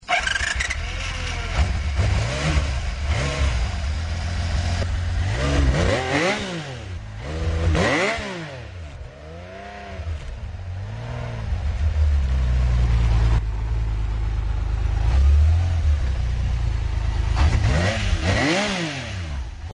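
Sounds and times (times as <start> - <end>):
Honda CBX 1000 motorcycle engine: 0.0 - 19.7.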